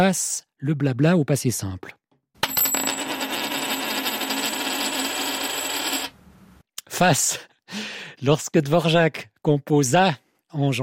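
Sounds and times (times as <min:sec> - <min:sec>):
speech: 0:00.0 - 0:02.0, 0:07.0 - 0:10.8
coin toss landing: 0:02.4 - 0:06.2.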